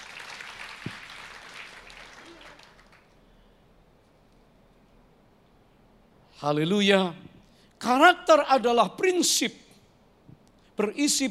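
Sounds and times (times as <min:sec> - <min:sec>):
audience applause: 0:00.0 - 0:03.2
speech: 0:06.4 - 0:09.6, 0:10.8 - 0:11.2.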